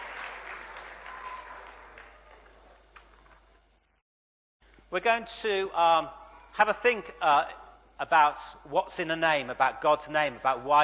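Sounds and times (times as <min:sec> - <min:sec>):
round of applause: 0:00.0 - 0:03.5
speech: 0:04.9 - 0:10.8.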